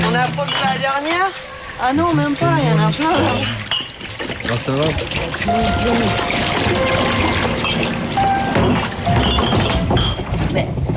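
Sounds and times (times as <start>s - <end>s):
speech: 0.2s - 8.3s, 10.6s - 10.9s
liquid pouring through a funnel into a bottle: 1.4s - 9.5s.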